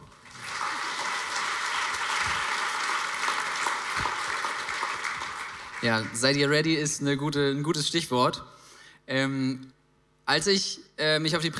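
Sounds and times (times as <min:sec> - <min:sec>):
crowd applause: 0:00.0 - 0:06.6
speech: 0:05.8 - 0:11.5.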